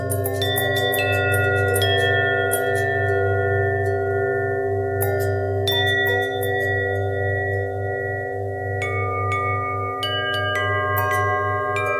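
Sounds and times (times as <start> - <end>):
long bell with bend and twist: 0.0 - 11.9.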